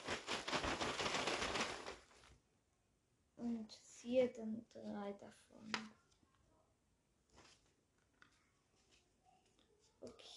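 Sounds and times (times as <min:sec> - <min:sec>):
paper name slips rustling as they are shuffled: 0:00.0 - 0:02.3
speech: 0:04.0 - 0:06.0.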